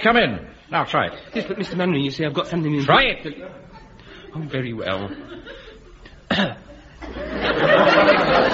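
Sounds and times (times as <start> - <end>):
speech: 0.0 - 5.6, 6.3 - 8.5
laughter: 4.7 - 8.5
person giving a deliberate cough: 6.2 - 6.9.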